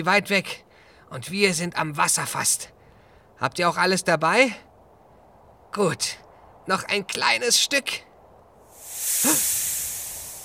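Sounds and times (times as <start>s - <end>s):
speech: 0.0s - 2.8s, 3.4s - 4.7s, 5.7s - 8.1s, 9.1s - 9.6s
snake hissing: 8.6s - 10.4s.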